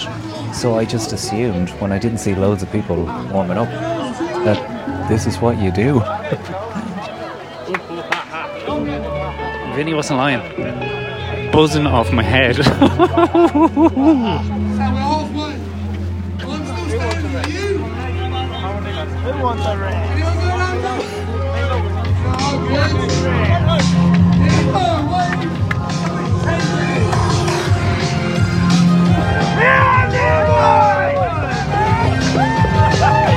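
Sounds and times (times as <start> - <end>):
noisy crowd at marathon start: 0.0 - 33.3
speech: 0.1 - 6.6, 9.8 - 14.9, 19.4 - 20.3
laughter: 6.0 - 9.0, 12.5 - 14.7.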